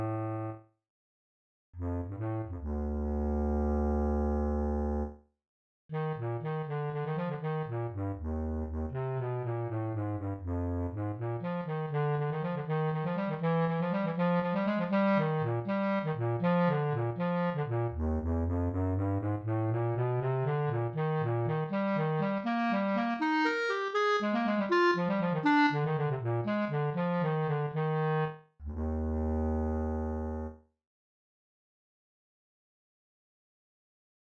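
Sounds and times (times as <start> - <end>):
bass clarinet: 0.0 - 0.6, 1.8 - 5.1, 5.9 - 30.6.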